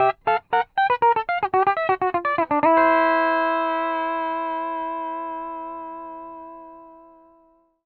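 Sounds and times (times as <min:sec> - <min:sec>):
country music loop at 120 BPM: 0:00.0 - 0:04.9.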